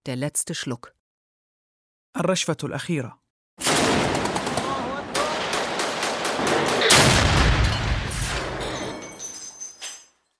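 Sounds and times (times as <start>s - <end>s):
speech: 0.0s - 1.0s, 2.1s - 3.2s
explosions and airplane bombing: 3.6s - 9.0s.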